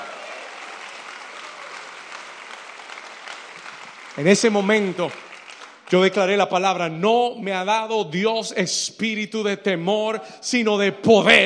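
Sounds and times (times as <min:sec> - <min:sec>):
audience applause: 0:00.0 - 0:06.2
speech: 0:04.2 - 0:05.2, 0:05.9 - 0:11.4.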